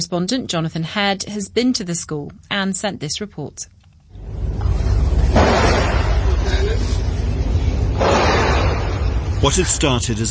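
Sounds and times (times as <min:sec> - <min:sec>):
speech: 0:00.0 - 0:03.8, 0:09.4 - 0:10.3
constant noisy background: 0:00.0 - 0:10.3
gunshots during a school shooting near Bangkok: 0:05.3 - 0:06.3, 0:08.0 - 0:09.2.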